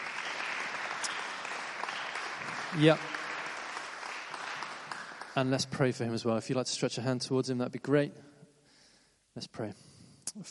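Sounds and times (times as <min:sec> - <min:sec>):
church congregation applauding to welcome a speaker: 0:00.0 - 0:06.0
speech: 0:02.7 - 0:03.1, 0:05.4 - 0:08.3, 0:09.4 - 0:10.4.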